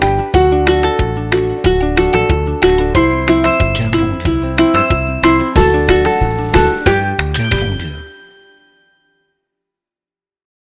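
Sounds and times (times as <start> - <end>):
upbeat positive kids music: 0.0 - 8.6.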